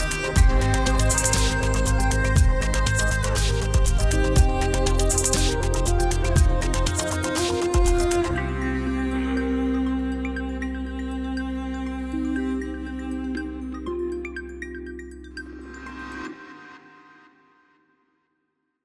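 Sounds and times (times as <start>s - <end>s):
cello: 0.0s - 14.4s.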